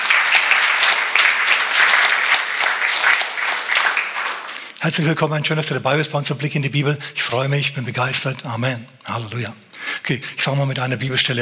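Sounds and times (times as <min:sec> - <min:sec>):
audience clapping: 0:00.0 - 0:05.0
speech: 0:04.8 - 0:11.3.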